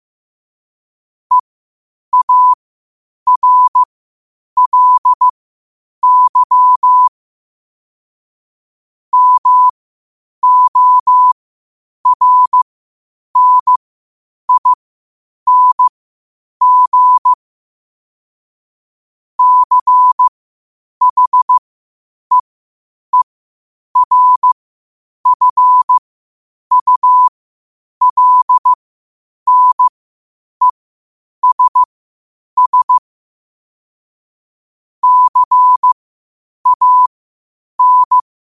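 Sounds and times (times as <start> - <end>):
morse code at 5 wpm: 2.1 - 2.6, 3.3 - 3.9, 4.6 - 5.3, 6.0 - 7.1, 9.1 - 9.7, 10.4 - 11.4, 12.0 - 12.6, 13.4 - 13.8, 14.5 - 14.8, 15.5 - 15.9, 16.6 - 17.4, 19.4 - 20.3, 21.0 - 21.6, 24.0 - 24.6, 25.2 - 26.0, 26.7 - 27.3, 28.0 - 28.8, 29.5 - 29.9, 31.4 - 31.9, 32.6 - 33.0, 35.0 - 36.0, 36.6 - 37.2, 37.8 - 38.2.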